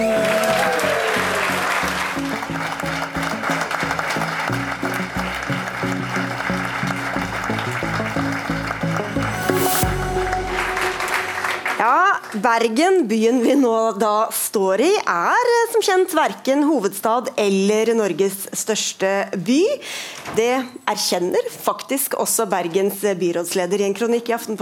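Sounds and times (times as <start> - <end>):
live audience applause: 0.0 - 12.4
speech: 12.4 - 24.6.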